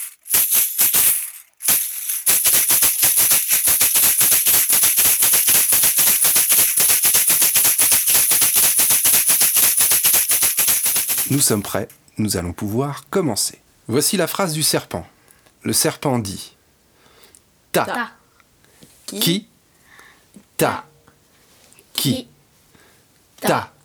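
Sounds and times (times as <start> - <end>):
ganzá shaker with small clashing cymbals: 0.0 - 12.0
speech: 11.3 - 16.6, 17.8 - 18.2, 19.1 - 19.5, 20.6 - 20.9, 22.0 - 22.3, 23.5 - 23.7.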